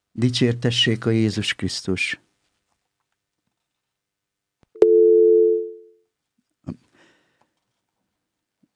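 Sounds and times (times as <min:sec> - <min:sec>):
speech: 0:00.2 - 0:02.2
telephone line tone from an incoming call that failed to connect: 0:04.8 - 0:05.9.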